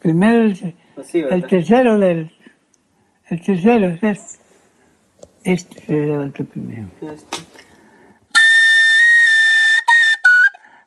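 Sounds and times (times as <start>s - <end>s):
speech: 0.0s - 2.4s, 3.3s - 4.4s, 5.4s - 7.6s
whistled melody: 8.3s - 10.8s.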